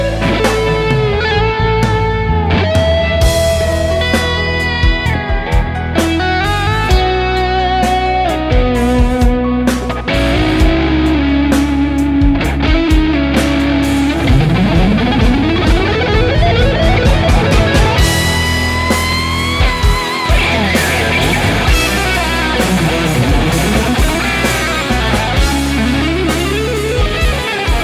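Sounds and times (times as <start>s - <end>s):
80's style improvisation guitar backing track: 0.0s - 27.8s.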